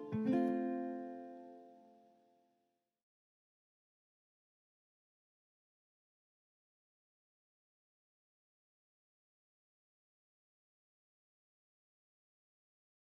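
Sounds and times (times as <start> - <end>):
ukulele: 0.0 - 2.1.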